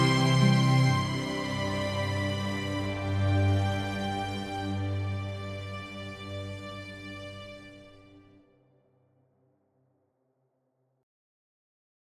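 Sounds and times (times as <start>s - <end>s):
strings: 0.0s - 8.4s.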